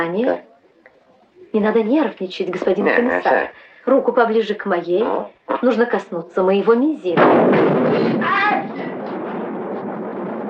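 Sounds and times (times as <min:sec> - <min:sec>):
speech: 0:00.0 - 0:00.5, 0:01.5 - 0:08.7
lightning striking a transformer: 0:07.2 - 0:10.4.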